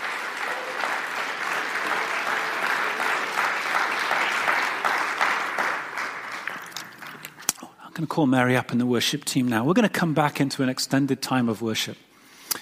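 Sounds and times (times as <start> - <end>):
audience applause: 0.0 - 7.5
speech: 8.0 - 12.1.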